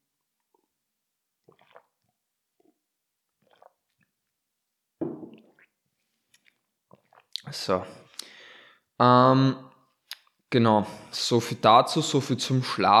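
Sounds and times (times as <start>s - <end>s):
tea being sipped in slurps and swallows: 1.4s - 4.3s, 5.3s - 8.3s
speech: 7.5s - 8.0s, 9.0s - 9.7s, 10.5s - 12.9s.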